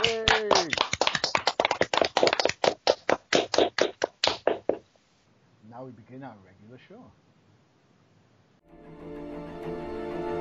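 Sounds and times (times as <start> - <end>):
hand claps in applause: 0.0 - 4.8
speech: 5.8 - 7.3, 8.7 - 9.8.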